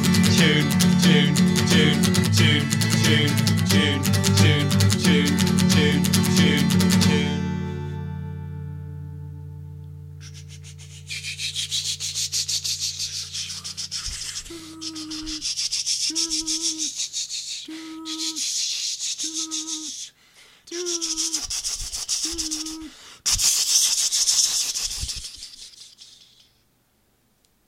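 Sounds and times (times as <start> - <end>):
acoustic tune: 0.0 - 16.9.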